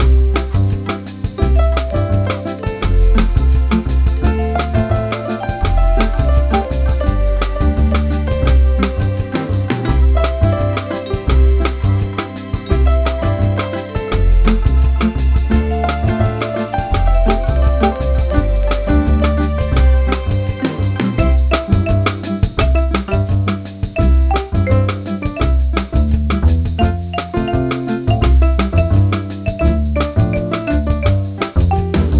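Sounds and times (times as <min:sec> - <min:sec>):
bossa nova tune: 0:00.0 - 0:32.1.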